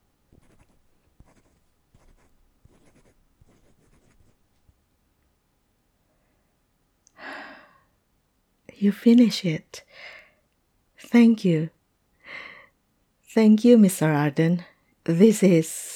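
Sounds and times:
calligrapher's pen or brush scratching on paper: 0:00.3 - 0:04.4
breathy sigh: 0:07.2 - 0:07.9
speech: 0:08.8 - 0:10.2, 0:11.0 - 0:12.5, 0:13.3 - 0:15.9.

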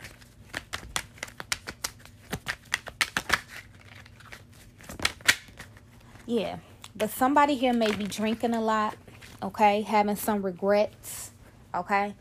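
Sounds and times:
tarot cards shuffled and drawn: 0:00.0 - 0:06.2, 0:06.9 - 0:09.4
speech: 0:06.3 - 0:12.1.

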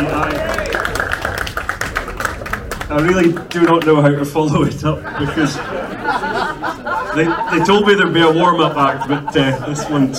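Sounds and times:
audience applause: 0:00.0 - 0:04.2
crowd voices: 0:00.0 - 0:10.1
speech: 0:02.9 - 0:10.1
laughter: 0:04.5 - 0:10.1.

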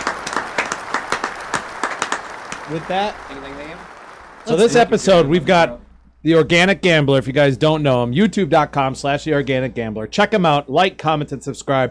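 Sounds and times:
small group applause: 0:00.0 - 0:05.6
speech: 0:02.7 - 0:11.8.

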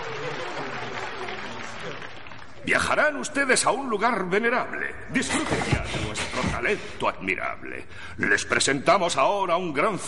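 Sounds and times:
theatre audience applause: 0:00.0 - 0:03.0
speech: 0:02.6 - 0:10.0.

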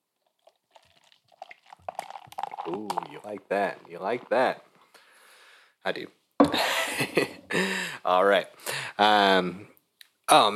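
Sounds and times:
beer being poured: 0:00.2 - 0:04.7
speech: 0:02.7 - 0:04.7, 0:05.8 - 0:09.7, 0:10.3 - 0:10.5.

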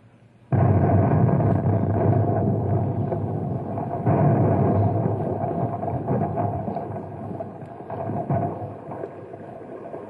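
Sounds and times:
explosive charge detonating: 0:00.5 - 0:10.0.

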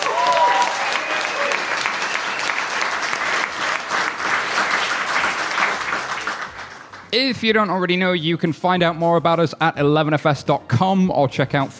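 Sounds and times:
audience cheering: 0:00.0 - 0:06.2
speech: 0:07.1 - 0:11.7.

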